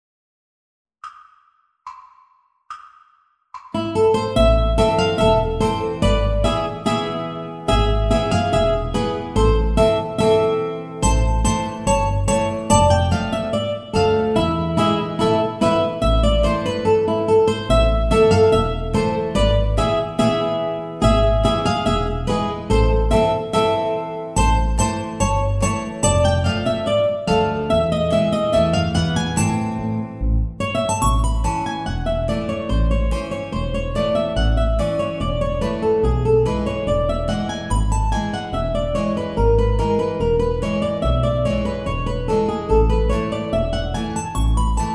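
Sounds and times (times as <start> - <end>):
polka music: 3.8 - 44.8.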